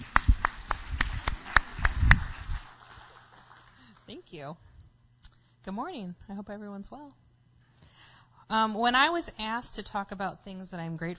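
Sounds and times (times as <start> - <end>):
audience applause: 0.0 - 4.2
speech: 4.3 - 4.7, 5.6 - 7.2, 8.5 - 11.1.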